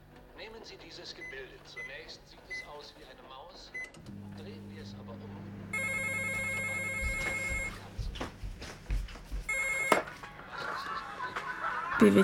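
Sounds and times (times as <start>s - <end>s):
speech: 0.6s - 5.9s, 12.0s - 12.2s
telephone ringing: 5.7s - 7.9s, 9.5s - 10.2s
shuffling footsteps: 5.9s - 11.6s
laughter: 10.2s - 12.2s.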